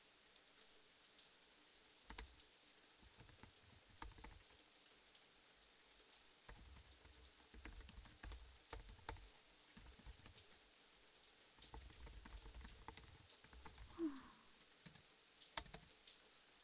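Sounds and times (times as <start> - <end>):
rain: 0.0 - 16.6
working at a PC: 1.9 - 4.7, 6.1 - 16.3.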